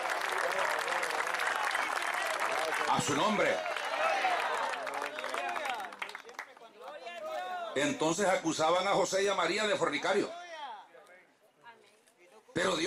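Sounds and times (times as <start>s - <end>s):
audience applause: 0.0s - 7.3s
speech: 2.9s - 4.3s, 7.8s - 10.4s, 12.6s - 12.8s.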